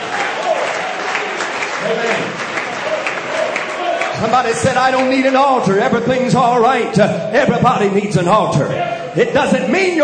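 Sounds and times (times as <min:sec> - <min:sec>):
audience clapping hands: 0:00.0 - 0:05.6
speech: 0:01.8 - 0:02.3, 0:04.2 - 0:10.0.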